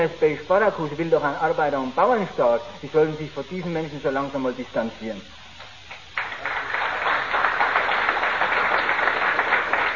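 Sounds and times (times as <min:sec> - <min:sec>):
speech: 0:00.0 - 0:05.4
audience applause: 0:05.9 - 0:09.9.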